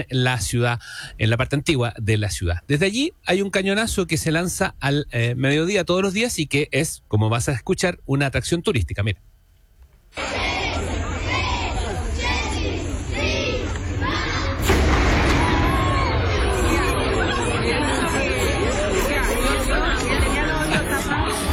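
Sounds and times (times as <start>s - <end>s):
speech: 0.0s - 9.3s
crowd of tourists chattering at a tower: 10.2s - 21.5s.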